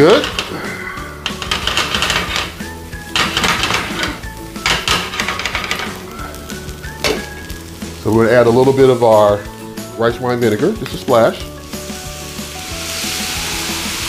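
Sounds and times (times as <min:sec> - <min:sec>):
speech: 0:00.0 - 0:00.7, 0:08.0 - 0:11.5
constant crackling sizzle: 0:00.0 - 0:14.0
rice tossed and stirred in a hot pan: 0:01.2 - 0:02.6, 0:03.2 - 0:06.0.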